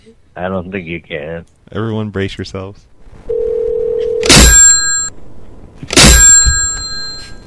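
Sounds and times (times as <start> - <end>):
speech: 0.0 - 3.3
telephone dial tone: 3.3 - 4.3
phone bell jangling: 3.4 - 5.1, 6.0 - 7.4.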